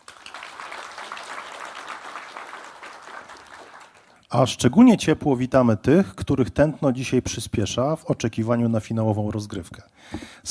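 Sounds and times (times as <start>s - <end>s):
audience applause: 0.0s - 4.3s
speech: 4.3s - 10.4s.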